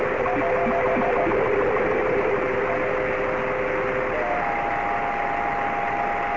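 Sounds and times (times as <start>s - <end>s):
SuitSat SSTV signal tones: 0.1s - 6.3s.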